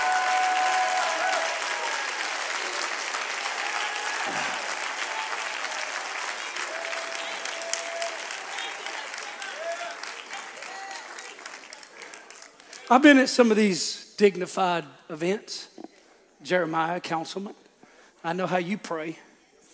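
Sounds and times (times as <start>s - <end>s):
audience clapping hands: 0.0s - 13.6s
speech: 12.9s - 15.7s, 16.4s - 17.6s, 18.2s - 19.3s.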